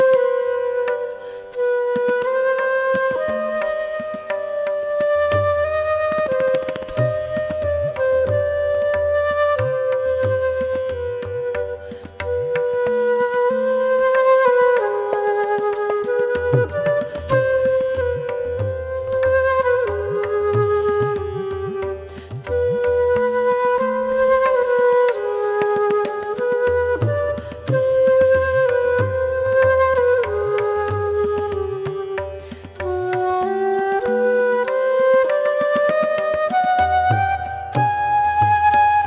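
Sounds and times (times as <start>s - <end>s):
raga performance: 0.1s - 39.0s.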